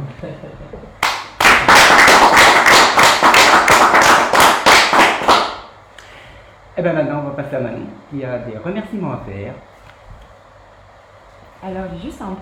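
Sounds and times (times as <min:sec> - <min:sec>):
speech: 0:00.2 - 0:00.9, 0:06.8 - 0:09.7, 0:11.6 - 0:12.4
audience applause: 0:01.0 - 0:05.6.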